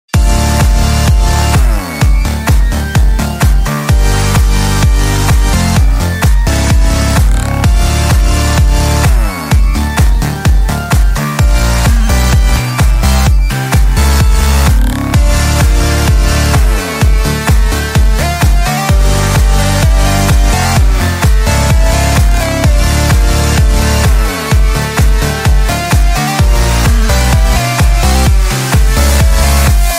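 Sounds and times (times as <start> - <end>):
house music: 0.1 - 29.9.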